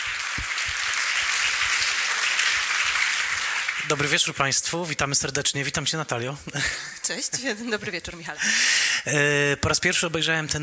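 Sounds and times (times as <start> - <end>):
audience applause: 0.0 - 4.6
speech: 3.9 - 10.6.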